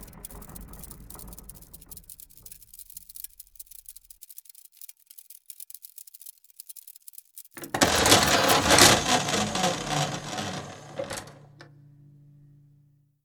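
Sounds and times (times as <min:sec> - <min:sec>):
circuit-bent protectograph: 0:00.0 - 0:11.7.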